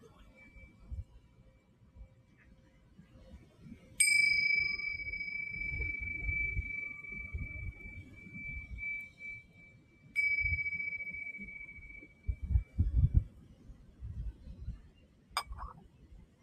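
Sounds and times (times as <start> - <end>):
wind: 0.0 - 16.4
singing bowl ringing: 4.0 - 12.5.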